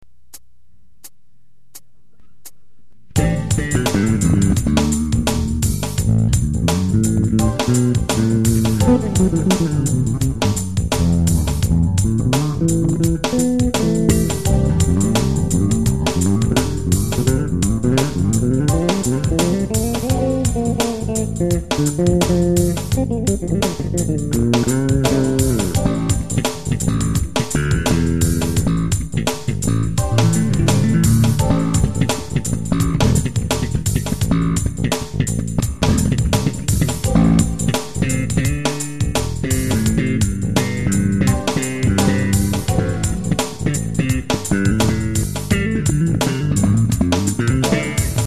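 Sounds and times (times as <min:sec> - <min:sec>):
double bass fusion jam: 0:03.2 - 0:48.2.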